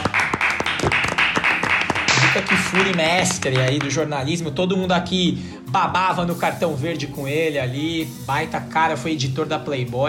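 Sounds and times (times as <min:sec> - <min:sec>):
round of applause: 0:00.0 - 0:04.0
speech: 0:02.7 - 0:10.0.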